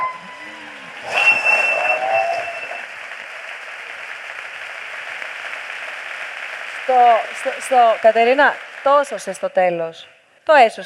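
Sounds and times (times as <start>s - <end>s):
thin whistle-like tones: 0.0s - 2.9s
audience applause: 0.0s - 9.5s
speech: 6.9s - 10.8s.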